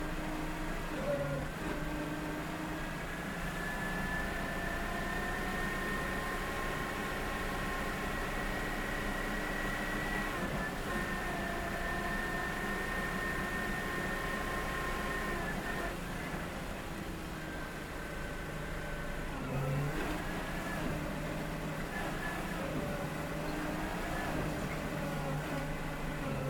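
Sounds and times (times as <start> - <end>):
tank destroyer engine and intake driving, stopping and reversing: 0.0 - 26.4.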